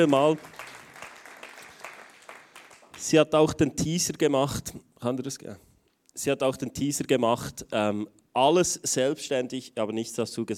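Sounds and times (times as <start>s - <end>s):
speech: 0.0s - 0.6s, 3.0s - 10.5s
audience applause: 0.0s - 3.0s.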